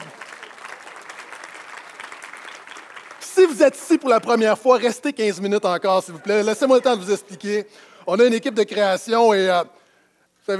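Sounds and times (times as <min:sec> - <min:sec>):
audience clapping: 0:00.0 - 0:04.8
speech: 0:03.4 - 0:09.8.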